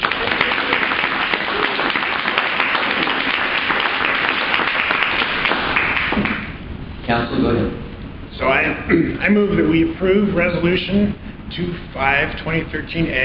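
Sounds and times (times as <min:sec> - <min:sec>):
audience applause: 0:00.0 - 0:06.6
speech: 0:07.1 - 0:07.8, 0:08.4 - 0:13.2.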